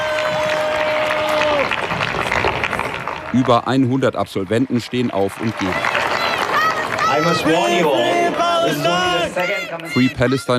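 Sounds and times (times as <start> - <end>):
crowd booing: 0.0 - 3.0, 5.1 - 10.5
applause: 0.0 - 10.5
speech: 3.3 - 6.0, 7.1 - 10.5.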